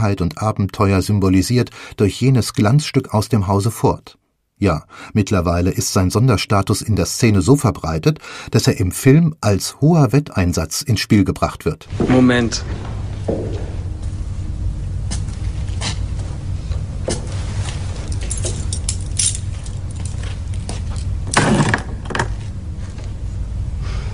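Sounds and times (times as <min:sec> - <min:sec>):
speech: 0:00.0 - 0:13.4
steady low hum: 0:00.0 - 0:24.1
keys to a 1974 Ford Granada GLX Coupé jingling: 0:18.0 - 0:21.1.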